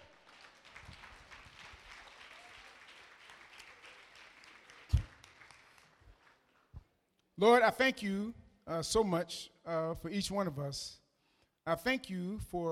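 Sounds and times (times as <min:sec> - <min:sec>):
audience clapping: 0:00.0 - 0:07.0
speech: 0:07.4 - 0:11.0, 0:11.7 - 0:12.7.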